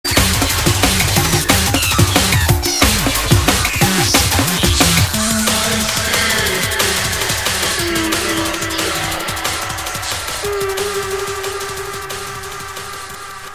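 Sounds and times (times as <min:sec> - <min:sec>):
drum and bass jungle and old skool music on UK Bass Radio: 0:00.0 - 0:13.5.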